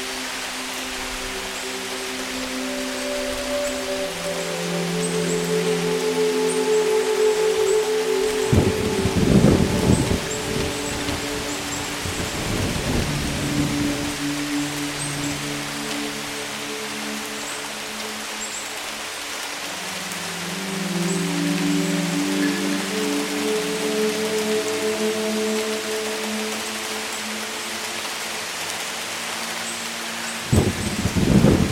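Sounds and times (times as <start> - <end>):
heavy rain: 0.0 - 31.7
soft sustained 432 Hz tones: 0.0 - 31.7
thunder rumbling: 8.5 - 15.4.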